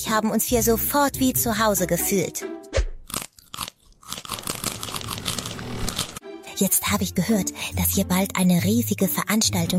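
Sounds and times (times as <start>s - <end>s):
speech: 0.0s - 2.5s, 6.6s - 9.7s
crunchy chewing on wood in Bremerhaven: 3.1s - 6.2s.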